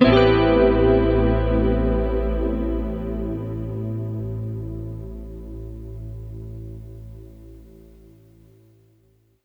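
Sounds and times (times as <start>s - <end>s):
synth pad in A minor: 0.0s - 9.1s.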